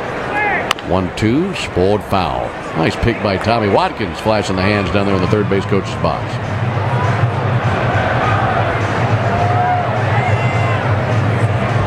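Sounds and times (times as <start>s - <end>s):
Friday night crowd murmur at Great American Ballpark: 0.0s - 11.8s
speech: 0.9s - 6.6s.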